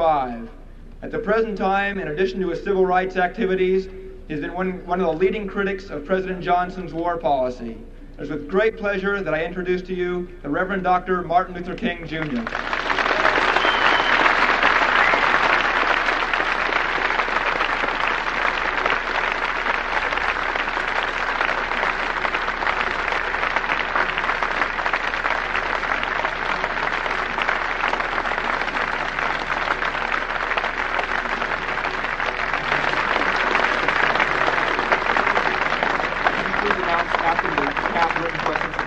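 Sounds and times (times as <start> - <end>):
speech: 0.0 - 12.8
audience applause: 12.2 - 38.8.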